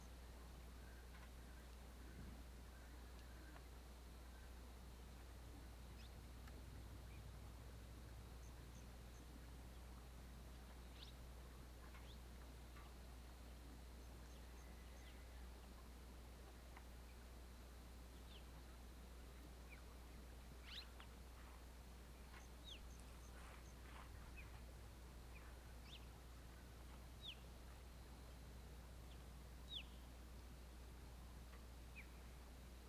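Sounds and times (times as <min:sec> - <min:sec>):
wind in rural afternoon: 0:00.0 - 0:32.8.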